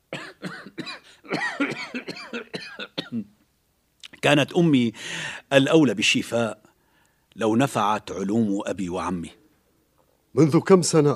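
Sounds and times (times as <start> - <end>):
person coughing with a persistent cough: 0.1 - 3.3
speech: 4.2 - 6.6, 7.4 - 9.4, 10.3 - 11.1.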